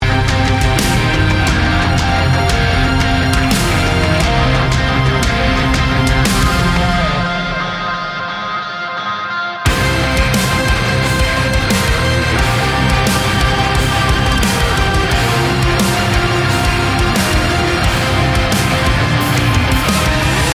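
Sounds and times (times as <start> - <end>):
instrumental music: 0.0 - 20.5.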